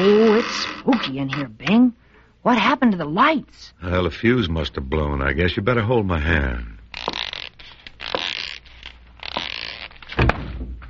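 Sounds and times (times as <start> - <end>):
creaking: 0.0 - 1.6, 6.9 - 10.4
speech: 0.0 - 6.8
bumping into a closet door: 10.2 - 10.8.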